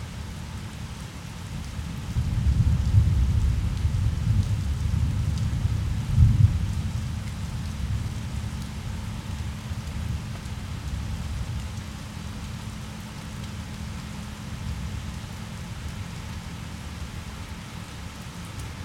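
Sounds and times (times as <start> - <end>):
rain: 0.0 - 18.8.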